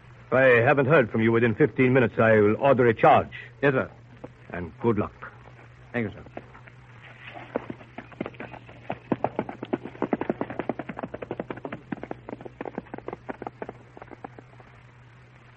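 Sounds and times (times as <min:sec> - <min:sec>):
faint steady hum: 0:00.0 - 0:15.5
speech: 0:00.3 - 0:05.3, 0:06.0 - 0:06.4
horse hooves clip-clopping as a rider approaches Fort Zinzendorf: 0:05.4 - 0:15.5.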